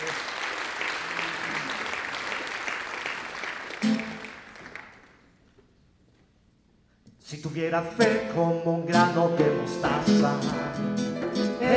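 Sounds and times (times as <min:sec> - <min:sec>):
congregation clapping hands during church worship service: 0:00.0 - 0:05.6
speech: 0:07.6 - 0:11.1.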